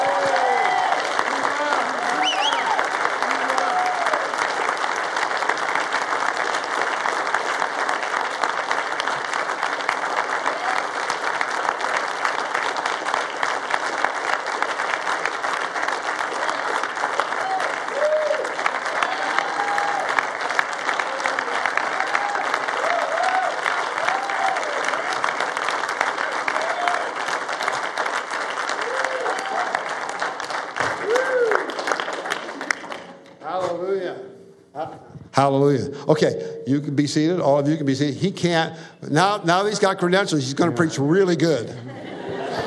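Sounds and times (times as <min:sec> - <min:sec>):
audience applause: 0:00.0 - 0:33.6
speech: 0:35.4 - 0:41.8
laughter: 0:41.6 - 0:42.6.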